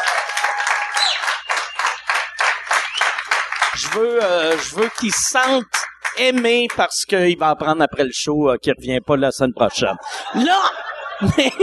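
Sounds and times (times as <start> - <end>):
audience applause: 0.0 - 6.9
laughter: 3.8 - 5.2, 9.6 - 11.6
speech: 3.8 - 11.6.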